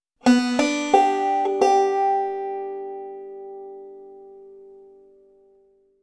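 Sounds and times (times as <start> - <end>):
musical lick: 0.2 - 4.8.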